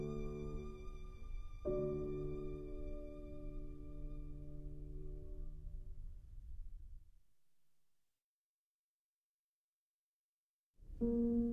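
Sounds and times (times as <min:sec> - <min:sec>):
violin: 0:00.0 - 0:05.4
piano: 0:00.0 - 0:07.0, 0:10.9 - 0:11.5.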